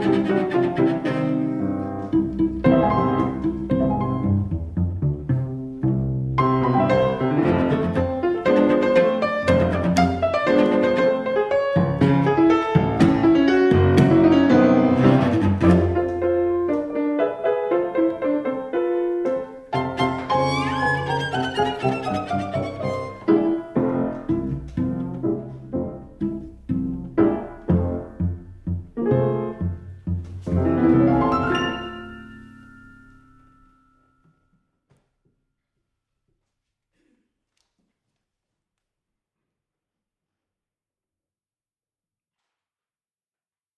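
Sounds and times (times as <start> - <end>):
sonata: 0.0 - 34.7.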